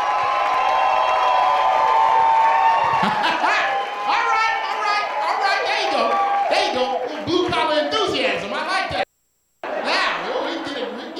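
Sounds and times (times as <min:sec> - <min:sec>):
audience clapping and cheering: 0:00.0 - 0:08.4
laughter: 0:02.8 - 0:04.7, 0:09.8 - 0:11.1.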